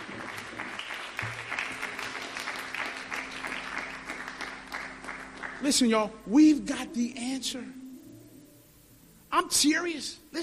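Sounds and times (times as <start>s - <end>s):
audience clapping hands in praise: 0.0s - 6.1s
speech: 5.6s - 7.8s, 9.4s - 10.4s.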